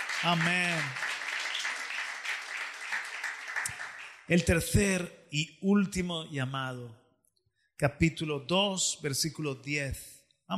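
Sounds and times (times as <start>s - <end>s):
church congregation applauding during a service: 0.0s - 4.9s
speech: 0.2s - 1.0s, 4.3s - 7.0s, 7.8s - 10.5s.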